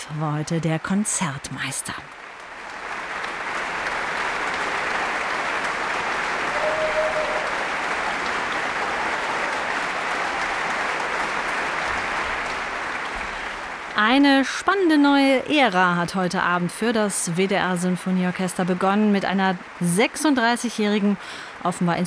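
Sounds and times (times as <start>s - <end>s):
speech: 0.1s - 2.2s, 14.0s - 22.0s
large concert audience applause: 2.1s - 14.5s.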